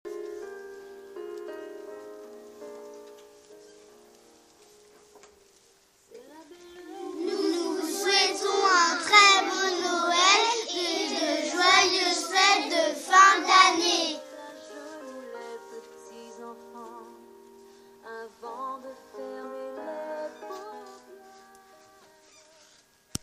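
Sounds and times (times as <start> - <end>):
vocals: 6.1 - 22.9.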